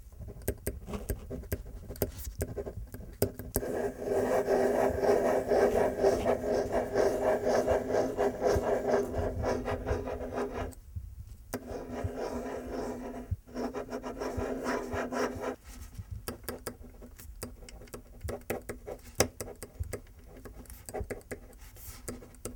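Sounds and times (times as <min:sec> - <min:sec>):
pen writing on paper: 0:00.3 - 0:10.8, 0:11.6 - 0:15.6, 0:16.4 - 0:22.5.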